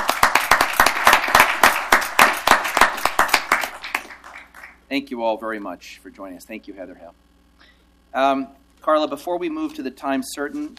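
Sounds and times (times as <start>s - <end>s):
small group applauding: 0.0s - 4.8s
speech: 4.9s - 7.3s, 8.1s - 10.7s.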